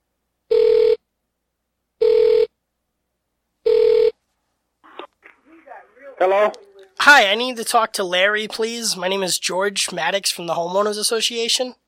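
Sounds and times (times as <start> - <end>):
telephone ringing as a call is placed: 0.5 - 1.0, 2.0 - 2.5, 3.7 - 4.2
speech: 6.2 - 11.8.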